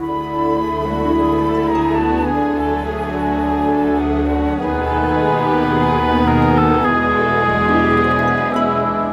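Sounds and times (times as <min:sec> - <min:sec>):
cinematic orchestra: 0:00.0 - 0:09.1.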